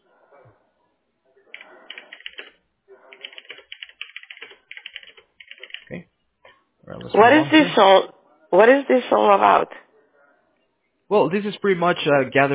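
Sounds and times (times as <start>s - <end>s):
typing on a computer keyboard while entering notes into a system: 1.5s - 6.0s
speech: 5.9s - 6.1s, 6.9s - 9.8s, 11.1s - 12.5s.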